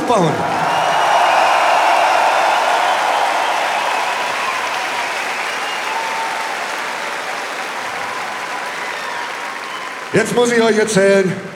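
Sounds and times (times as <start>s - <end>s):
audience applause: 0.0s - 11.1s
speech: 0.1s - 0.6s, 10.1s - 11.5s.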